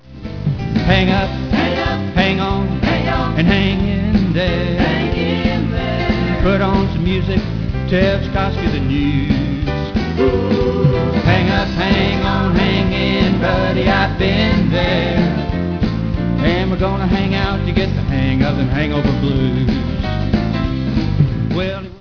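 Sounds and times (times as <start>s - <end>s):
blues music: 0.0s - 21.9s.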